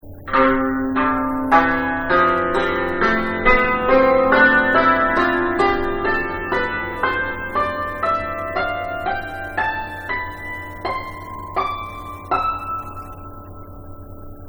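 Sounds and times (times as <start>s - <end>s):
Tam Thap Luc musical scale: 0.0s - 14.4s.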